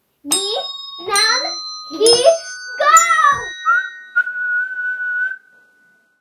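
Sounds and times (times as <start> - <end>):
jingle: 0.3 - 4.4.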